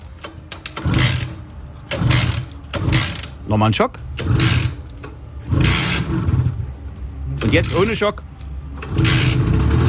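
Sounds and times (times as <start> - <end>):
Simson S51 moped engine starting: 0.2 - 3.4, 4.2 - 6.6, 8.7 - 9.8
speech: 3.5 - 4.4, 7.4 - 8.3.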